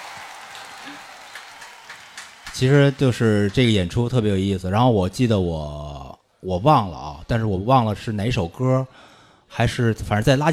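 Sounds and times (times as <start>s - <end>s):
crowd applause: 0.0s - 3.7s
speech: 2.6s - 10.5s.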